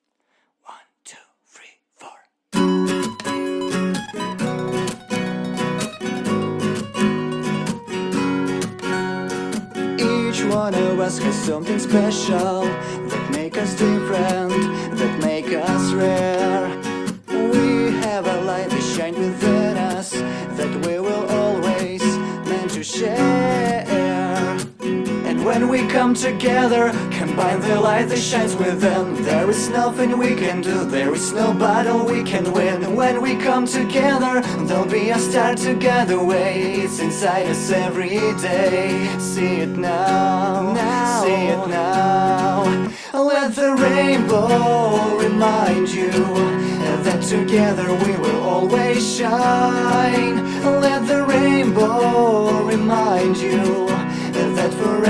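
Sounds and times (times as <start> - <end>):
acoustic cover song: 2.6 - 55.0.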